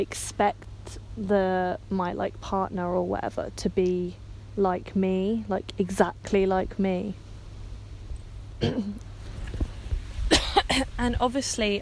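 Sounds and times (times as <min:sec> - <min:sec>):
speech: 0:00.0 - 0:07.2, 0:08.6 - 0:09.1, 0:10.8 - 0:11.8
throat clearing: 0:08.6 - 0:09.0.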